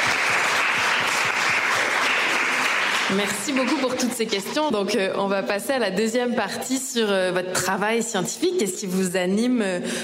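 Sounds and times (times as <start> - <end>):
audience applause at a science talk: 0.0 - 4.4
speech: 3.1 - 10.0.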